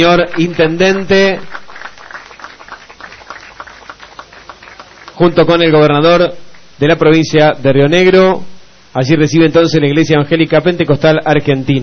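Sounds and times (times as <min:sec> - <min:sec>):
speech: 0:00.0 - 0:01.6, 0:05.2 - 0:11.8
applause at a ceremony for a Pentecostal church donation: 0:00.0 - 0:05.8.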